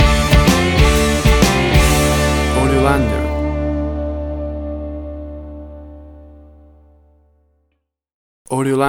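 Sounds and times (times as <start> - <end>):
boogie music stinger: 0.0 - 7.0.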